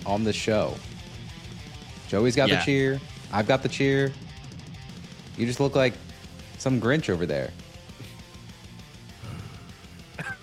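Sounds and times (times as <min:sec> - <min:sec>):
speech: 0:00.0 - 0:00.9, 0:02.1 - 0:04.2, 0:05.4 - 0:06.0, 0:06.6 - 0:07.6
person yawning: 0:09.2 - 0:09.9.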